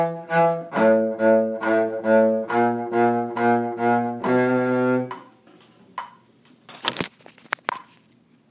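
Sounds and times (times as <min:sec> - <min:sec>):
cello: 0:00.0 - 0:05.3.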